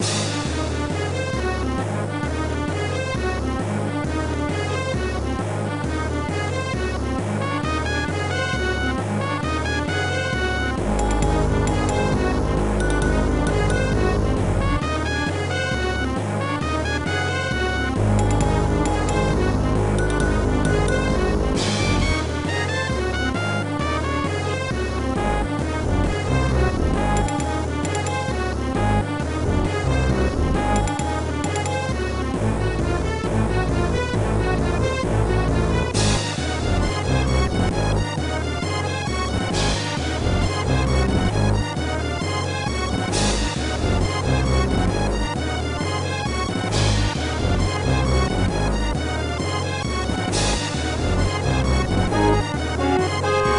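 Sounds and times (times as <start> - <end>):
music: 0.0 - 53.5.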